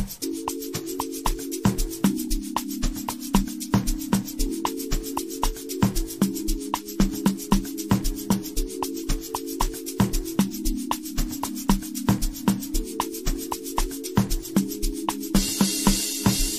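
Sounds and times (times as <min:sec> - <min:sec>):
amapiano music: 0:00.2 - 0:16.5.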